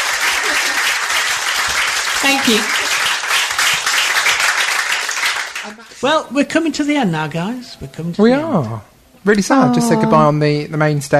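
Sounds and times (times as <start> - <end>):
audience applause and cheering: 0.0 - 5.8
speech: 2.2 - 2.8, 5.7 - 11.1.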